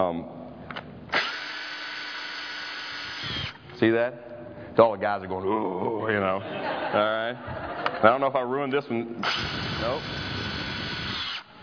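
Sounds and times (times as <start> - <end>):
speech: 0.0 - 0.4, 3.8 - 10.2
power drill driving a screw through material: 1.1 - 3.6, 9.2 - 11.6
laughter: 5.7 - 8.3.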